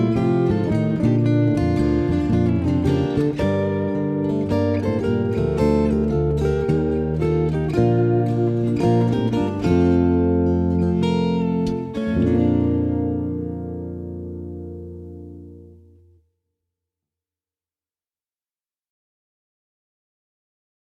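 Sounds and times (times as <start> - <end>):
acoustic music: 0.0 - 16.2.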